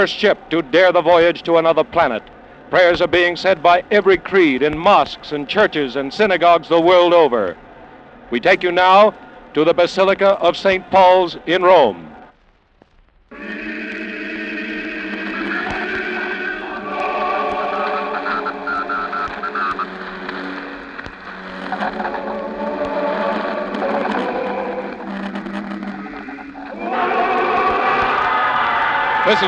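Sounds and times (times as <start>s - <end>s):
speech: 0.0s - 7.6s, 8.3s - 12.1s, 29.3s - 29.4s
crowd roaring: 13.4s - 21.1s, 21.7s - 25.2s, 25.8s - 29.4s.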